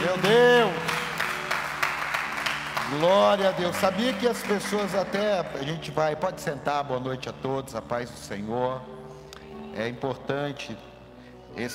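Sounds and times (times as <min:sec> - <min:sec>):
audience applause: 0:00.0 - 0:05.6
speech: 0:02.9 - 0:09.0, 0:09.8 - 0:10.9, 0:11.5 - 0:11.7.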